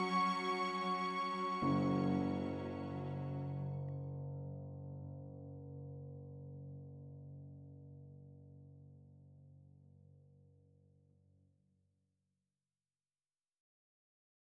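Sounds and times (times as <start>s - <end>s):
cinematic orchestra: 0.0s - 3.8s.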